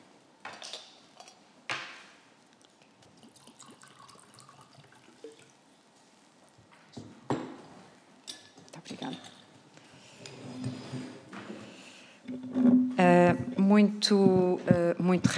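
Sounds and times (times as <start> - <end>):
water pouring into a glass: 3.0 - 5.7
speech: 9.0 - 9.4, 13.0 - 15.3.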